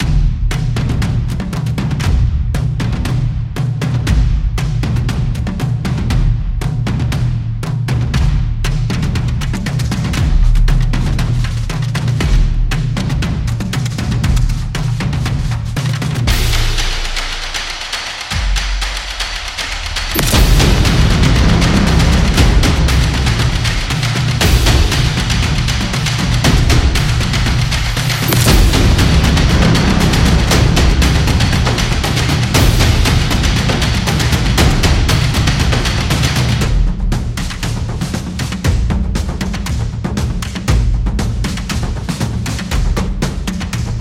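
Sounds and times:
tribal drums: 0.0 - 43.9.

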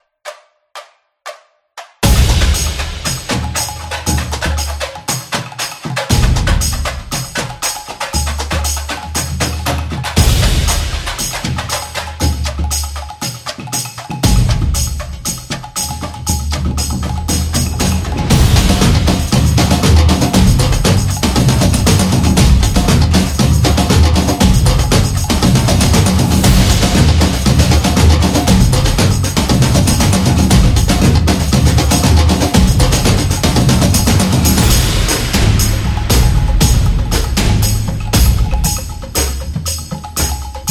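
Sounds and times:
samba percussion background music with stadium energy: 0.0 - 40.7.

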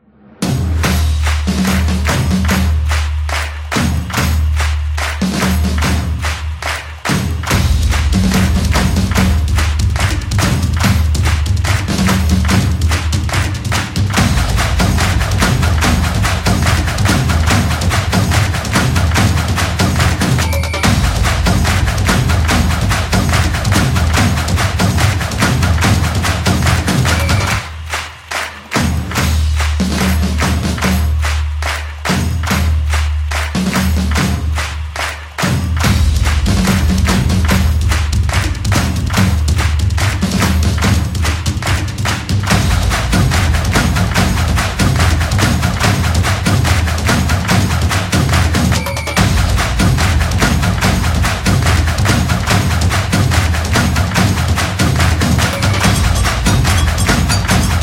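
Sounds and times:
football samba drums: 0.4 - 57.8.

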